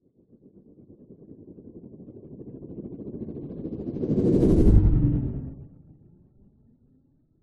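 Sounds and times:
science fiction spacecraft flying by fast: 0:04.0 - 0:05.7.

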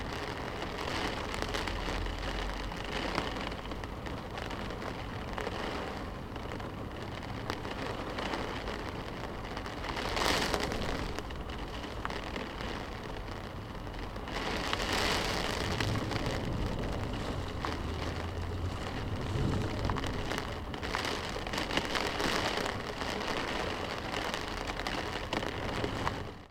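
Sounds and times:
heavy rain on car window heard inside car: 0:00.0 - 0:26.4
cars passing outside: 0:14.9 - 0:21.7.

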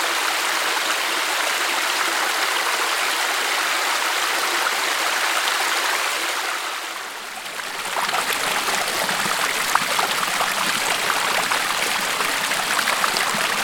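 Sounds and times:
subtropical rainforest waterfalls: 0:00.0 - 0:13.6
subtropical rainforest creeks flowing: 0:07.0 - 0:13.6.

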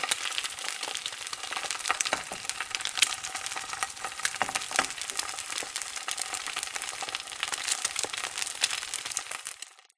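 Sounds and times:
egg cracking into hot frying pan: 0:00.0 - 0:09.8.

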